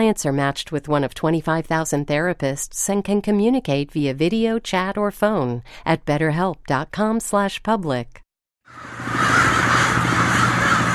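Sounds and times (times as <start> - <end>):
speech: 0.0 - 9.4
thousands of crows cawing downtown: 8.7 - 10.9.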